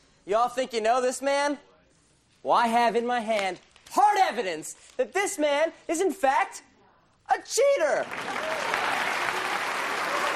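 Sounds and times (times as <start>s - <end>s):
speech: 0.2s - 1.7s, 2.4s - 6.7s, 7.3s - 8.7s
crowd of people clapping: 7.9s - 10.3s
crowd noise: 8.0s - 10.3s.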